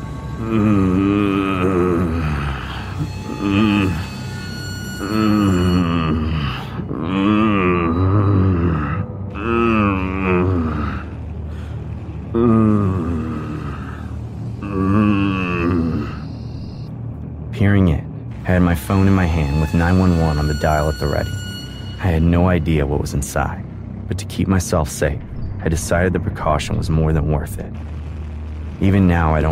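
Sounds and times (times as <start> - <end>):
low repeated groaning: 0.0 - 29.4
speech: 0.4 - 1.3, 19.3 - 21.4, 22.0 - 27.9, 28.8 - 29.4.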